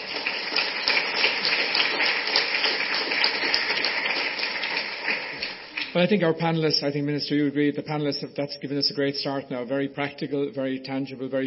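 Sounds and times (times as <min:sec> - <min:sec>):
audience applause: 0:00.0 - 0:06.0
speech: 0:06.0 - 0:11.4.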